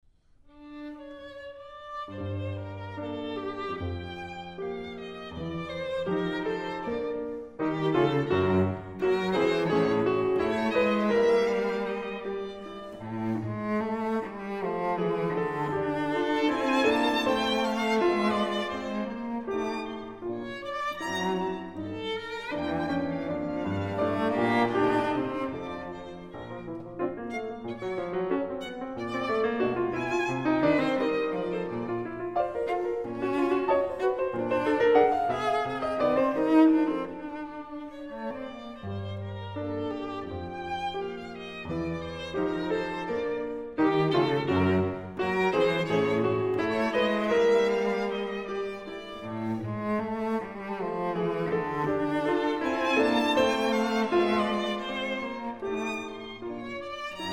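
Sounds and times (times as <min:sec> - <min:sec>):
piano trio: 0:02.1 - 0:57.3.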